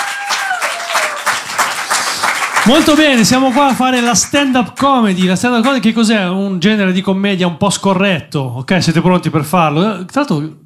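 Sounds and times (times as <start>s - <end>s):
audience applause at a stand-up comedy show in a pub: 0.0s - 4.5s
speech: 2.7s - 10.6s.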